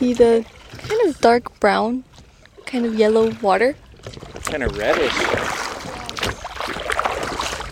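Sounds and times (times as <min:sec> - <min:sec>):
speech: 0:00.0 - 0:02.1, 0:02.7 - 0:05.7
rowing a boat out to sea: 0:00.0 - 0:07.7.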